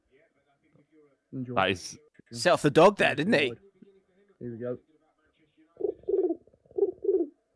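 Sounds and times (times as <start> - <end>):
speech: 1.4 - 3.6, 4.4 - 4.9
person imitating a pigeon cooing: 5.8 - 7.3.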